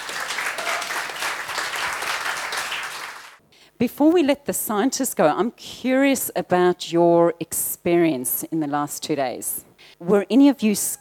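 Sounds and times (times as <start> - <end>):
audience applause: 0.0 - 3.4
speech: 3.8 - 10.9.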